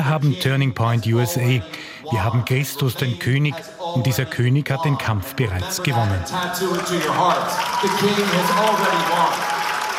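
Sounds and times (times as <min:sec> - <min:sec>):
speech: 0:00.0 - 0:09.5
audience cheering at a rally: 0:06.0 - 0:09.9.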